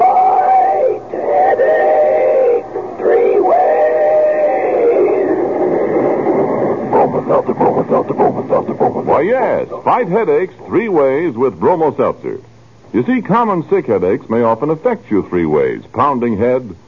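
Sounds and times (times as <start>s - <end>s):
talking train whistle-like droning tone: 0.0s - 8.0s
talking train rhythmic chugging puffs: 1.1s - 12.2s
speech: 9.6s - 16.8s.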